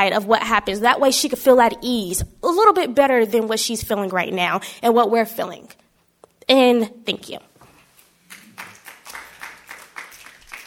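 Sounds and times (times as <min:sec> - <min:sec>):
speech: 0:00.0 - 0:05.8, 0:06.5 - 0:07.5
audience applause: 0:08.3 - 0:10.6.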